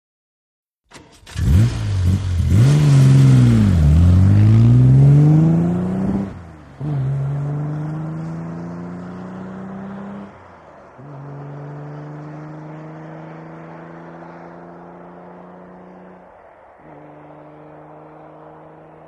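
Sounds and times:
Aston Martin engine starting: 0.9s - 16.0s
Aston Martin departing and accelerating: 0.9s - 19.0s.

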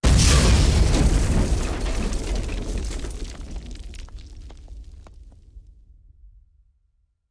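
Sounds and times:
rock and sand debris: 0.0s - 5.5s
rock explosion: 0.0s - 5.6s.

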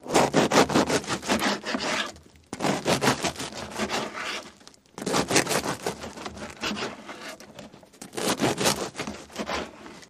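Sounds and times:
utensil cutting and slicing bread: 0.0s - 9.8s.

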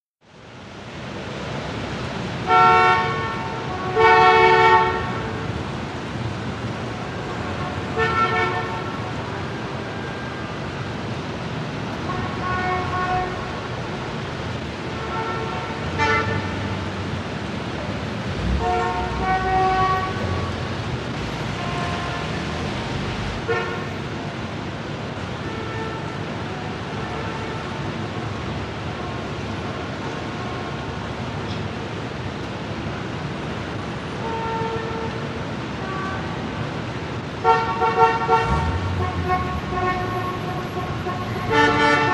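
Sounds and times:
big city traffic in Times Square: 0.2s - 42.1s.

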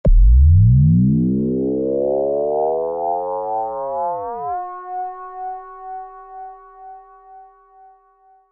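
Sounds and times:
synth effect rise: 0.1s - 5.6s.

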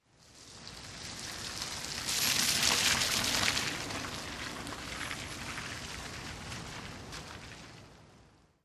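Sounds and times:
car rolling slowly on wet pavement with engine off: 0.2s - 8.4s.

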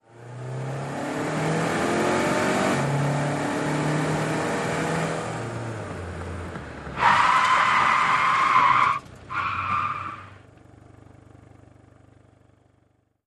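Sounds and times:
sedan accelerating: 0.0s - 10.4s
sedan tyres skidding: 2.2s - 11.2s.

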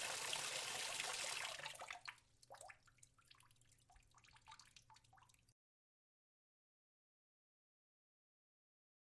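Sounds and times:
water in a half-full sink: 0.0s - 5.6s.

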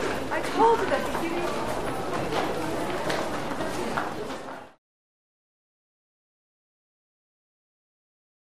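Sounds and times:
large crowd of pedestrians in a lobby: 0.0s - 4.8s.

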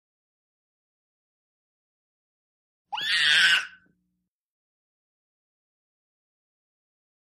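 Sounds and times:
nineteen-month-old baby girl shrieking: 2.9s - 3.8s.

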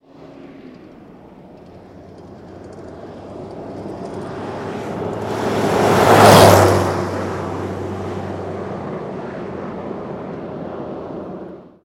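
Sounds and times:
1984 Jeep Cherokee engine: 0.0s - 11.8s.

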